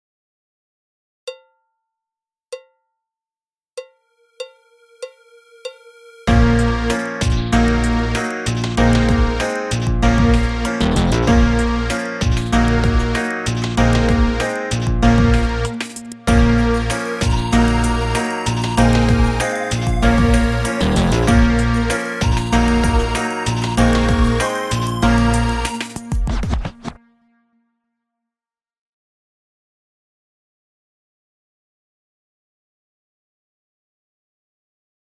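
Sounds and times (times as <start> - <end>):
trumpet playing: 4.3 - 26.4
trombone playing: 6.3 - 26.1.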